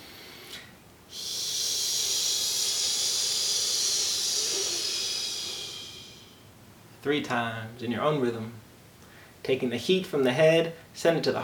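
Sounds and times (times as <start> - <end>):
long exhaled heee breath during a calming breathing exercise: 0.0 - 6.4
speech: 7.0 - 8.6, 9.5 - 11.4.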